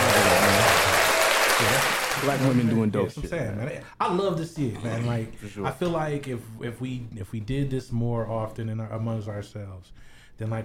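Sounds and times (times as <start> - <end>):
applause: 0.0 - 2.8
speech: 2.3 - 10.6.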